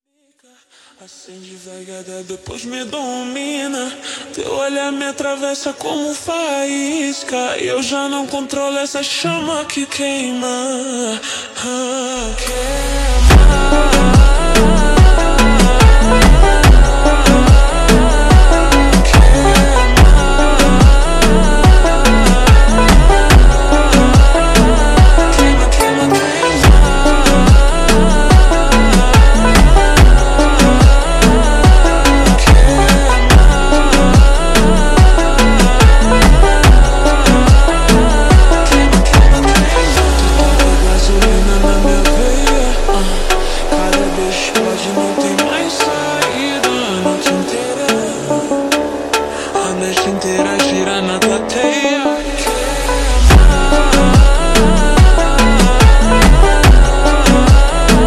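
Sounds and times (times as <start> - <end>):
super slowed montagem music: 12.2 - 58.0.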